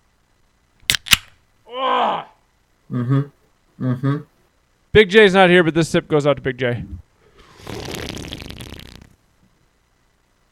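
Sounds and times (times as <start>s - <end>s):
speech: 2.9s - 4.3s, 4.9s - 7.0s
beer being opened: 7.4s - 9.2s.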